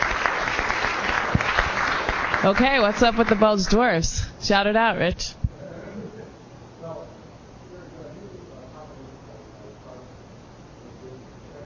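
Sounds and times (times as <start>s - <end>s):
audience applause: 0.0s - 3.7s
speech: 2.4s - 5.4s.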